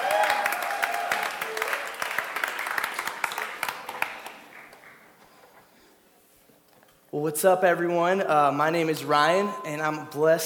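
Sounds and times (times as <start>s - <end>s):
crowd applause: 0.0s - 5.2s
speech: 7.2s - 10.4s.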